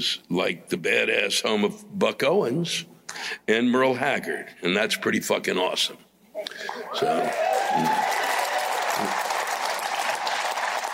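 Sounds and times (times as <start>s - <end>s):
speech: 0.0s - 8.2s, 9.0s - 9.2s
small audience applauding at a comedy show: 6.7s - 10.9s.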